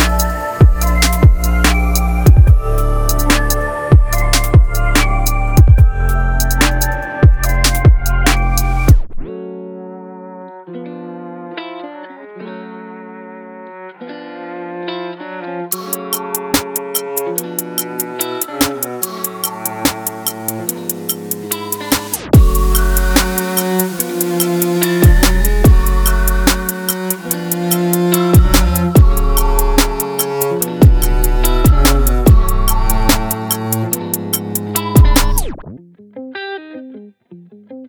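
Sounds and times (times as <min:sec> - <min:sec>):
trap beat samples: 0:00.0 - 0:09.0, 0:15.7 - 0:35.6.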